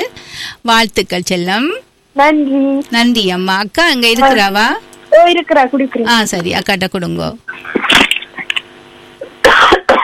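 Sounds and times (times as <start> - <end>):
speech: 0.6 - 7.8
person coughing harshly: 9.4 - 10.0.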